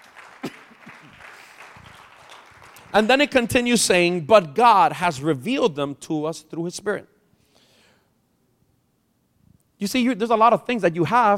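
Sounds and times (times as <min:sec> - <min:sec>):
audience applause: 0:00.0 - 0:03.1
speech: 0:02.9 - 0:07.1, 0:09.8 - 0:11.3.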